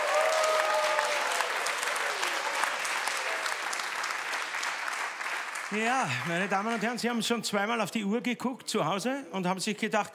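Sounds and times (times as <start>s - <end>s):
audience applause: 0.0s - 7.2s
speech: 5.7s - 10.1s.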